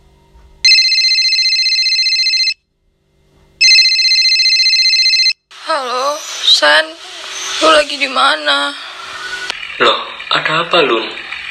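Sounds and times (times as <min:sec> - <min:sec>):
electronic telephone ringtone as a call is placed: 0:00.6 - 0:02.6, 0:03.6 - 0:05.4
speech: 0:06.6 - 0:07.0, 0:07.6 - 0:08.8, 0:09.8 - 0:11.2.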